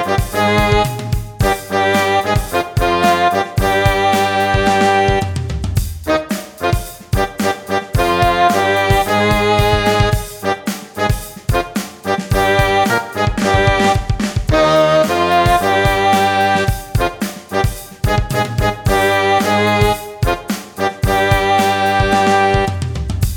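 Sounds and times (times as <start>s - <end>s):
brass playing second voice of a two-part exercise: 0.0s - 23.3s.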